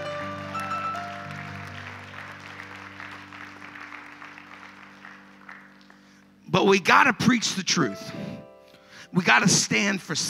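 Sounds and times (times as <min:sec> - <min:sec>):
audience hand clapping: 0:00.0 - 0:06.5
sustained low organ chords: 0:00.0 - 0:10.2
speech: 0:06.6 - 0:08.2, 0:09.2 - 0:10.2.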